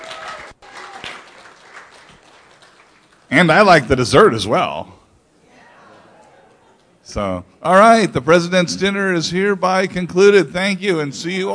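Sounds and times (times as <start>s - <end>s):
audience applause: 0.0s - 3.3s
speech: 3.3s - 5.0s, 7.1s - 11.5s.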